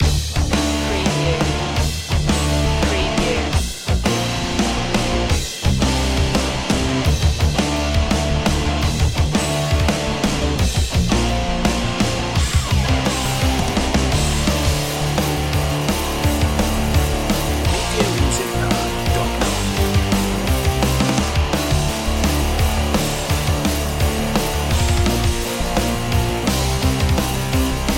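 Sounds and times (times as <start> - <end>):
8-bit rocktronic underscore music: 0.0 - 27.9.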